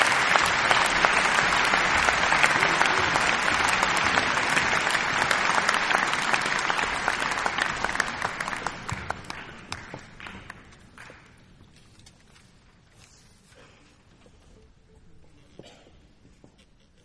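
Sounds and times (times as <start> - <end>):
applause: 0.0 - 11.5.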